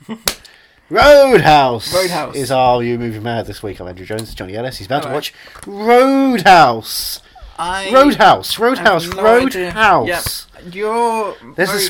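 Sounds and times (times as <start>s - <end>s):
speech: 0.0s - 11.8s
hand clapping: 0.2s - 0.6s, 8.8s - 10.4s.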